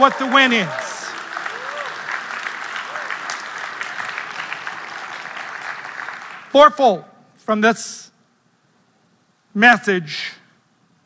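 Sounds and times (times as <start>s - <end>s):
speech: 0.0s - 0.9s, 6.5s - 8.1s, 9.6s - 10.4s
crowd shouting and whooping: 0.0s - 4.6s
crowd clapping: 0.0s - 6.6s.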